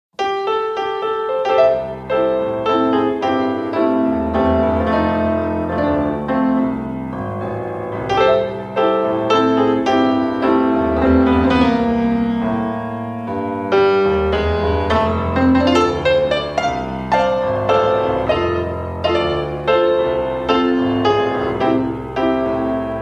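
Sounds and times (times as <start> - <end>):
blues music: 0.2 - 23.0.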